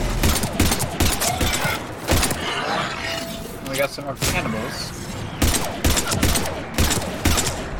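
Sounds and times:
bursts of gunfire in a shooter video game fighting cannibals: 0.2s - 2.4s, 5.4s - 7.7s
speech: 3.8s - 5.0s.

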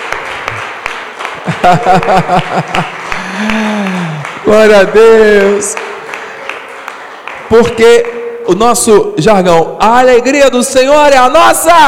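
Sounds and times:
crowd applause: 0.0s - 8.2s
laughter: 1.3s - 4.2s
speech: 1.6s - 5.8s, 7.5s - 11.8s.

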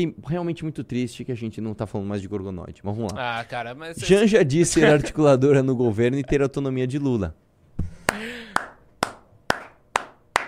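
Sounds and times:
speech: 0.0s - 8.4s
round of applause: 8.0s - 10.4s.

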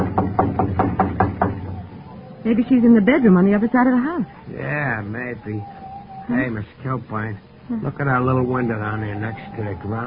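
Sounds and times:
knocking on a kitchen door: 0.0s - 1.9s
speech: 2.5s - 10.0s.

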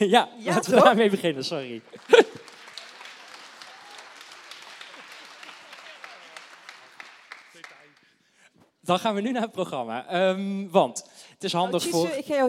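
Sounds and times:
speech: 0.0s - 2.3s, 8.8s - 12.4s
laughter: 0.5s - 2.6s
big round of applause: 0.8s - 8.2s.

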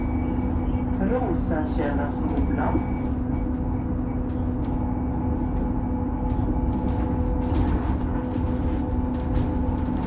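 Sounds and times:
bus engine rumble: 0.0s - 10.0s
constant drone: 0.0s - 10.0s
voices: 0.6s - 3.1s.

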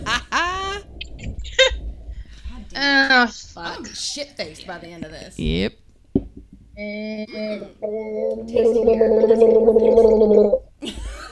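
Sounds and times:
speech: 2.8s - 5.8s, 6.8s - 11.0s
person gargling alcohol: 6.8s - 10.7s.

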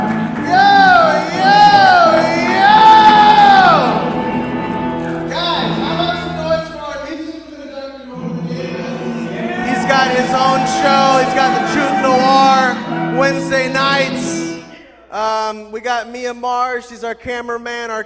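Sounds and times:
people shouting: 0.0s - 4.5s, 8.8s - 13.7s
talk show studio audience cheering, whooping and yelling: 0.0s - 6.5s, 8.6s - 14.6s
speech: 15.8s - 18.0s.

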